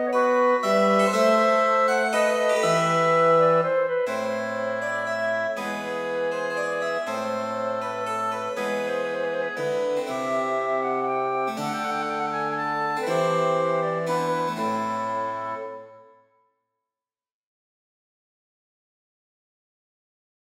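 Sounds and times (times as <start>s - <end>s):
harpsichord: 0.0s - 15.9s
wind quartet playing a rondeau: 0.0s - 16.1s.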